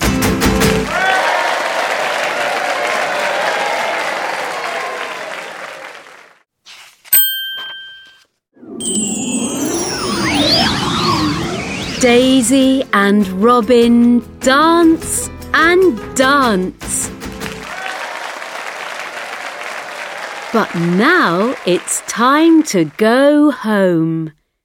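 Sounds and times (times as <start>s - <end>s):
crowd applauding: 0.7s - 6.4s, 17.3s - 22.7s
bright bell ding: 7.2s - 8.2s, 8.8s - 10.9s
sparkling warbling chime tones: 7.2s - 12.4s
speech: 12.0s - 16.8s, 20.5s - 24.4s.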